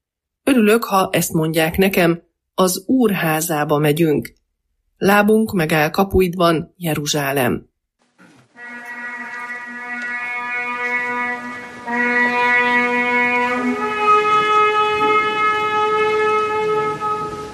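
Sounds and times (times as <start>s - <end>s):
speech: 0.6s - 4.4s, 5.0s - 7.7s
ceremonial horn blasts at ceremony: 8.2s - 17.5s.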